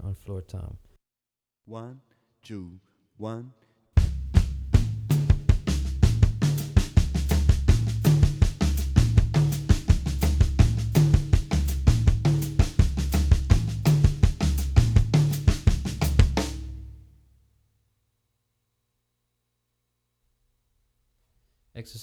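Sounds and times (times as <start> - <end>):
drumset playing samba cruzado: 4.0 - 17.0.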